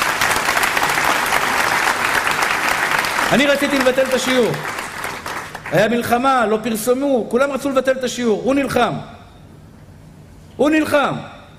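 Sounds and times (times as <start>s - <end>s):
audience applause: 0.0s - 5.9s
speech: 3.3s - 4.8s, 5.7s - 9.1s, 10.6s - 11.3s.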